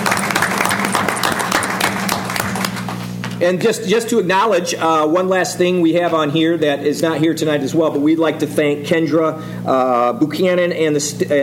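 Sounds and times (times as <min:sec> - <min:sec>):
crowd applause: 0:00.0 - 0:03.4
speech: 0:03.4 - 0:11.4.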